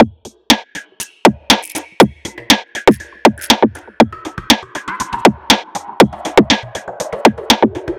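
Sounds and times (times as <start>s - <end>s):
drum loop beat: 1.0s - 6.6s.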